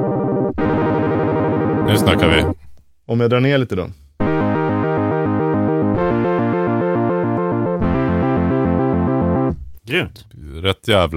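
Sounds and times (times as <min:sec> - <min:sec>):
buzzy analog synthesizer playing pulsing two-note chords: 0:00.0 - 0:02.6, 0:04.2 - 0:09.7
speech: 0:01.9 - 0:04.0, 0:09.9 - 0:11.1.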